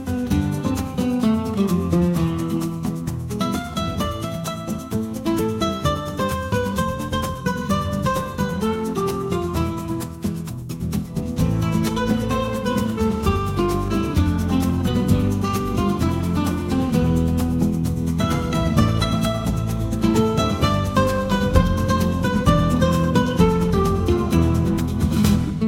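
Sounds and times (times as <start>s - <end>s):
passionate flamenco rhythms: 0.0s - 25.6s.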